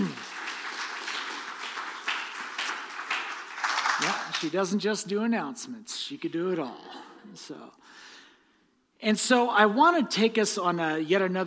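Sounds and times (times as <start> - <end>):
audience applause: 0.0 - 4.6
speech: 4.0 - 8.1, 9.0 - 11.4.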